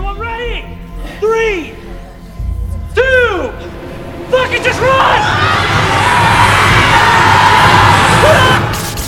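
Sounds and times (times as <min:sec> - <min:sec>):
speech: 0:00.1 - 0:01.8
dense crowd yelling and shouting: 0:04.3 - 0:09.0.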